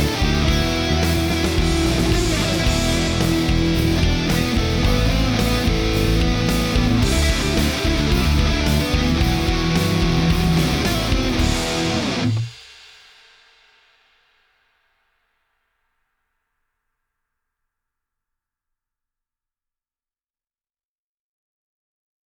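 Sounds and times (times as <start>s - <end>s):
guitar power chord jam: 0.0s - 12.5s.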